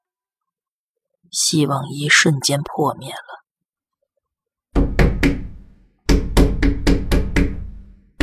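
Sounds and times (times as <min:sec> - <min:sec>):
speech: 0:01.3 - 0:03.4
loud banging on a window: 0:04.8 - 0:08.2.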